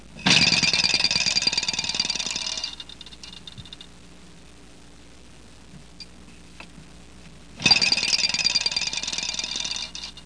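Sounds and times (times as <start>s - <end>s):
rattling: 0.2s - 3.9s, 7.6s - 10.2s.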